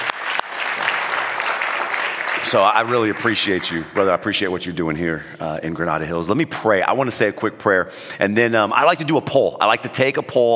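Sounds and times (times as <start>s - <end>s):
audience applause: 0.0s - 3.8s
speech: 2.5s - 10.5s.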